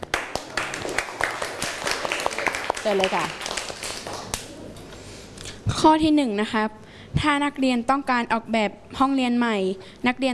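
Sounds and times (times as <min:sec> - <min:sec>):
students clapping in a classroom to encourage classmates: 0:00.0 - 0:04.5
speech: 0:02.8 - 0:03.4, 0:05.8 - 0:10.3.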